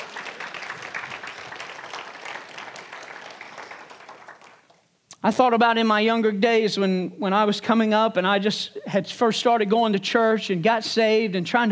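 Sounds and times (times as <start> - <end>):
audience hand clapping: 0.0 - 5.0
speech: 5.2 - 11.7.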